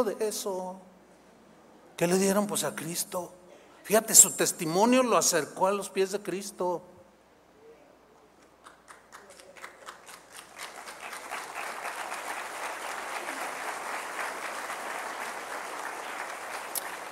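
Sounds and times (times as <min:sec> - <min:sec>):
speech: 0:00.0 - 0:00.9, 0:02.0 - 0:06.9
audience applause: 0:08.4 - 0:17.0.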